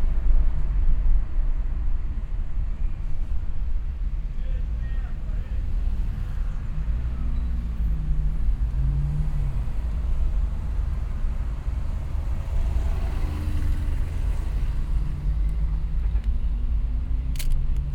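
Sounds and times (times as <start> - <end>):
street ambience in Brazil: 0.0 - 17.9.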